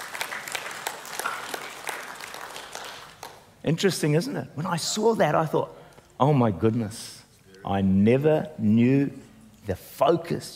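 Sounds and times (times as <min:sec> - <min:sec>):
audience clapping: 0:00.0 - 0:03.6
speech: 0:03.6 - 0:10.5.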